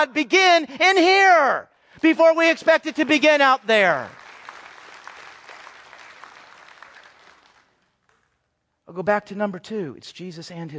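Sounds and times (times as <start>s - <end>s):
speech: 0.0s - 4.2s, 8.9s - 10.7s
audience clapping: 2.0s - 8.4s.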